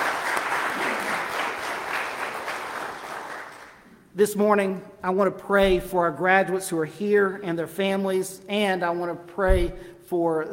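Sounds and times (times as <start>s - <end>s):
audience applause for graduates: 0.0s - 3.8s
speech: 4.2s - 10.5s.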